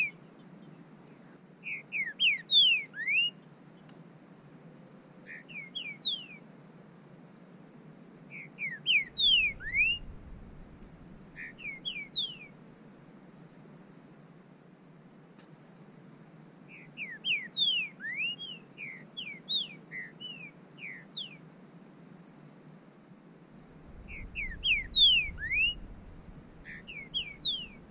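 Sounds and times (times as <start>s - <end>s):
bird whistling calls: 1.6s - 3.4s, 5.3s - 6.4s, 8.3s - 12.5s, 16.7s - 21.4s, 23.8s - 27.8s.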